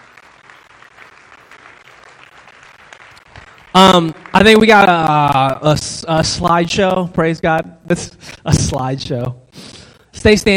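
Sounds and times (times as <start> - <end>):
audience applauding: 0.0 - 5.6
speech: 3.8 - 9.4, 10.2 - 10.5.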